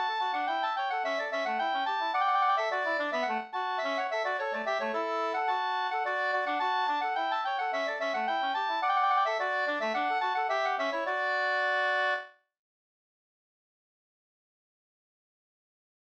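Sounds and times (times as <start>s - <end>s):
polska folk tune: 0.0s - 12.4s.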